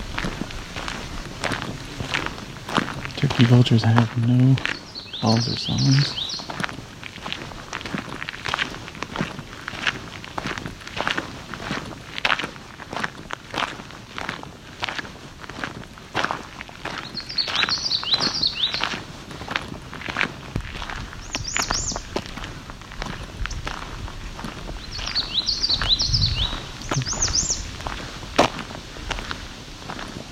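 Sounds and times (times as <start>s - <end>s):
footsteps crunching on the trail: 0.0s - 30.3s
warbler song: 3.1s - 6.7s, 16.9s - 19.0s, 21.2s - 22.2s, 24.7s - 27.9s
speech: 3.2s - 6.2s.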